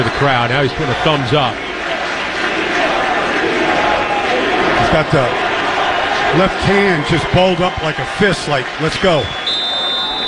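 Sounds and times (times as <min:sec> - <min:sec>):
stadium crowd applauding and cheering for an injured football player in light mist: 0:00.0 - 0:10.2
speech: 0:00.2 - 0:01.7, 0:04.8 - 0:05.5, 0:06.3 - 0:09.4.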